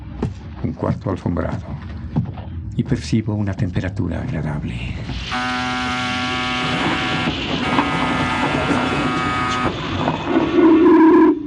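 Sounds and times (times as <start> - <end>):
speech: 0.6 - 2.0, 2.8 - 6.0
electric door sliding shut: 5.2 - 11.4.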